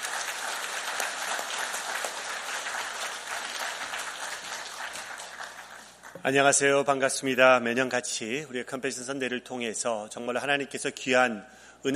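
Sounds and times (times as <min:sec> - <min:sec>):
audience applause: 0:00.0 - 0:06.2
speech: 0:06.2 - 0:11.9.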